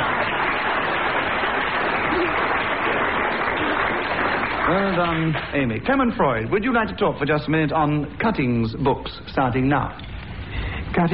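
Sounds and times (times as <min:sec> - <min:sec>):
audience applause: 0:00.0 - 0:05.6
speech: 0:04.7 - 0:10.1, 0:11.0 - 0:11.1.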